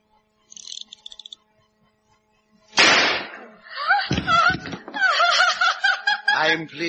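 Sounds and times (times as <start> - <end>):
gunshot as a man shoots himself in a radio drama: 2.8 - 3.5
laughter: 4.0 - 6.8.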